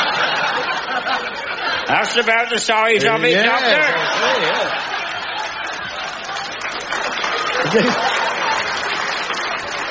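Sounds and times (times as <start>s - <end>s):
laughter: 0.0s - 9.8s
speech: 1.9s - 4.9s, 7.7s - 8.2s
applause: 4.6s - 9.8s.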